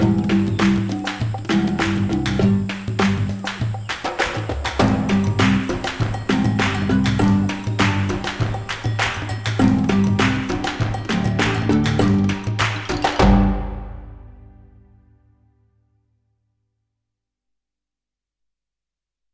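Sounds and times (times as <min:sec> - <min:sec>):
African rhythms: 0:00.0 - 0:14.8.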